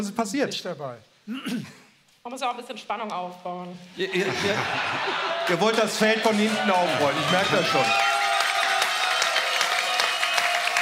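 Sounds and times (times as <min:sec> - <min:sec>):
speech: 0:00.0 - 0:08.1
laughter: 0:04.0 - 0:07.8
applause from the Hetschbach fan corner: 0:04.8 - 0:10.8.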